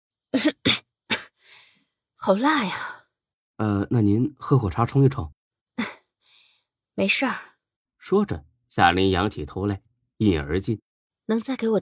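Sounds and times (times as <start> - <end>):
person coughing from choking: 0.4 - 1.3
speech: 2.2 - 3.0, 3.6 - 5.4, 7.0 - 11.8.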